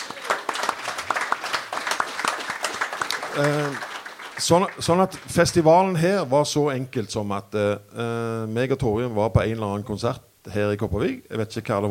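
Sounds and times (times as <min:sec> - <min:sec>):
small audience applause in a bar: 0:00.0 - 0:05.7
speech: 0:03.4 - 0:11.8.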